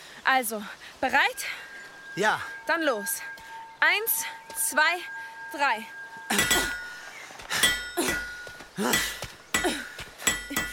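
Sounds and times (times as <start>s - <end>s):
speech: 0.3s - 6.7s, 8.8s - 9.1s
hammer blows knocking metal hooks loose from stone: 6.3s - 6.9s, 7.6s - 10.7s.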